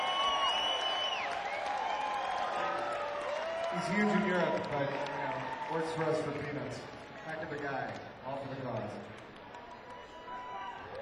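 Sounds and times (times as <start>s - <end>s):
sharp whistles: 0.0s - 1.7s
audience applause: 0.0s - 11.0s
cheering: 0.0s - 11.0s
speech: 3.7s - 9.2s.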